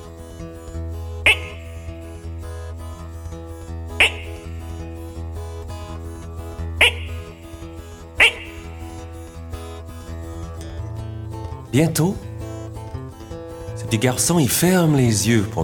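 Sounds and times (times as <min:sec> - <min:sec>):
frogs croaking: 0:00.0 - 0:11.5
speech: 0:11.8 - 0:12.3, 0:13.9 - 0:15.6.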